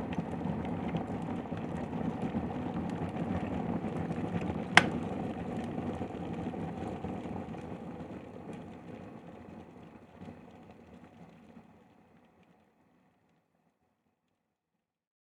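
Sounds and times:
kitchen kettle boiling: 0:00.0 - 0:09.6.

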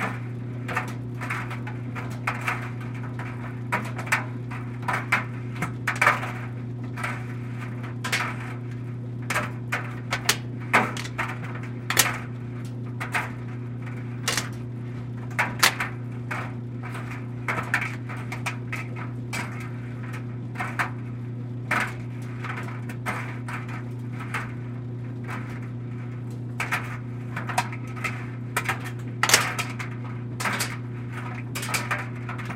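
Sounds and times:
loose objects moving in clothes dryer: 0:00.0 - 0:21.0, 0:25.2 - 0:32.5
household clothes dryer switching on running and off: 0:00.0 - 0:32.5.

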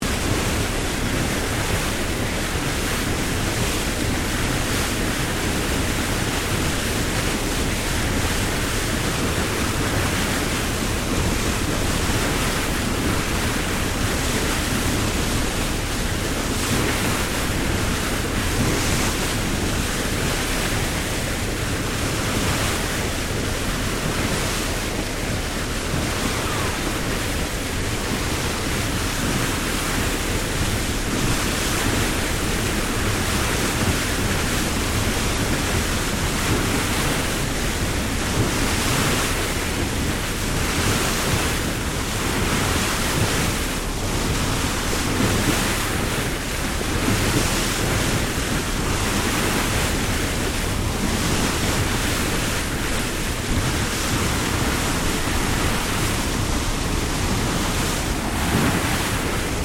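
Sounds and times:
Freshwater Class ferry bow wake in Sydney: 0:00.0 - 0:59.6.

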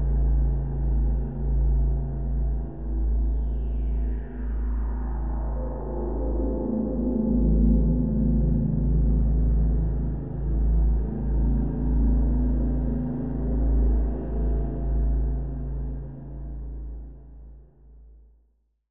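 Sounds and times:
dark low abysmal horror drone: 0:00.0 - 0:17.5.

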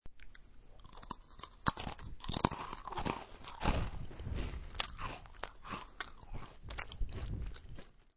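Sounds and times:
crunching and munching a cracker: 0:00.2 - 0:08.1
slight lip smacking: 0:04.7 - 0:07.9.

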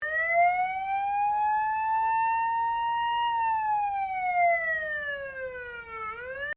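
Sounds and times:
old fire engine siren: 0:00.0 - 0:06.5.

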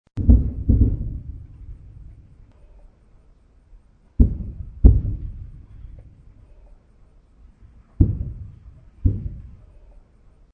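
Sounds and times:
distant artillery blasts: 0:00.2 - 0:02.9, 0:04.1 - 0:06.8, 0:07.8 - 0:10.0.

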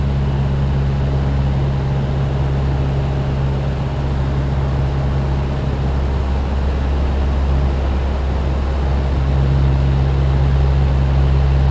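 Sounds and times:
Lockheed Hudson twin engine light bomber flying interior: 0:00.0 - 0:11.7.

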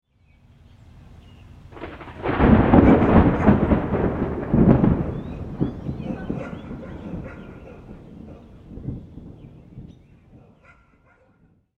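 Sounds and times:
birds: 0:00.0 - 0:02.1, 0:04.7 - 0:11.4
thunder clap: 0:01.7 - 0:10.7
neighborhood dog barking: 0:06.0 - 0:08.5, 0:10.4 - 0:11.5.

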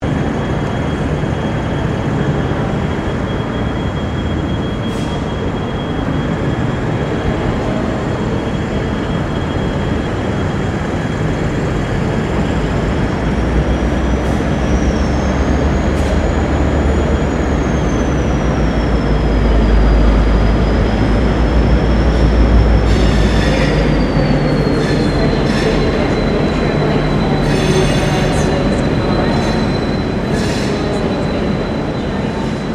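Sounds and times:
railway station ambience: 0:00.0 - 0:32.7.

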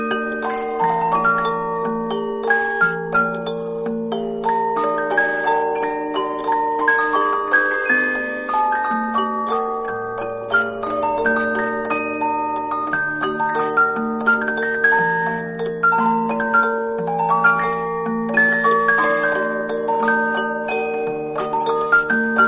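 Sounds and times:
toy music box tune: 0:00.0 - 0:22.4.

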